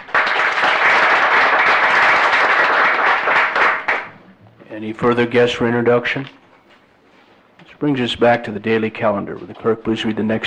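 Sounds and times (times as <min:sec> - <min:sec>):
audience applause in a legislative chamber welcoming a guest: 0:00.0 - 0:04.1
speech: 0:04.8 - 0:06.4, 0:07.8 - 0:10.4.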